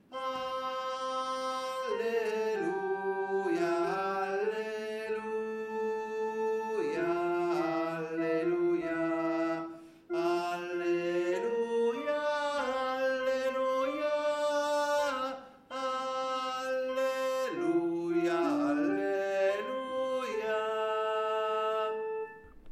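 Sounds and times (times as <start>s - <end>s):
tenors singing an alleluia: 0.0s - 22.7s.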